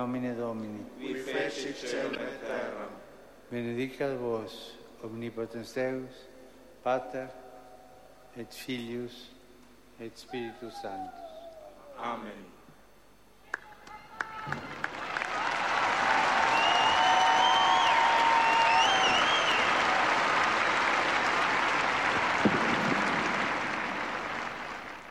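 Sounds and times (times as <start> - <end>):
speech: 0.0 - 7.4, 8.4 - 9.4, 10.0 - 11.3, 12.0 - 12.6
crowd applause: 14.2 - 25.0.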